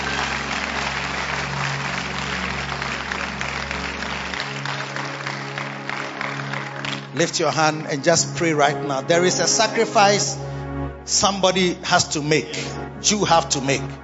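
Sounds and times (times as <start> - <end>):
crowd clapping: 0.0 - 8.4
speech: 7.2 - 10.5, 11.1 - 14.0.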